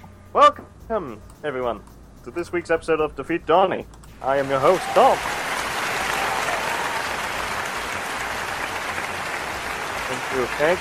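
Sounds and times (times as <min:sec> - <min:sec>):
speech: 0:00.4 - 0:05.4, 0:10.4 - 0:10.7
audience applause: 0:04.4 - 0:10.7.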